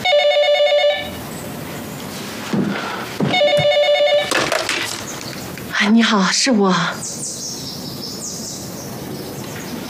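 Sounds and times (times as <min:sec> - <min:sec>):
telephone ringing: 0:00.0 - 0:01.1, 0:03.3 - 0:04.4
speech: 0:05.8 - 0:07.2.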